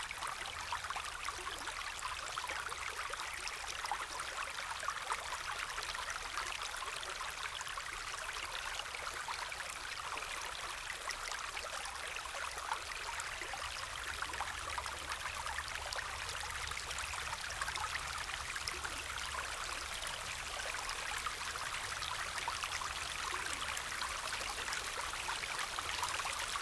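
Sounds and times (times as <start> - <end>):
mountain stream flowing: 0.0 - 26.6
relaxing rain: 12.6 - 26.6.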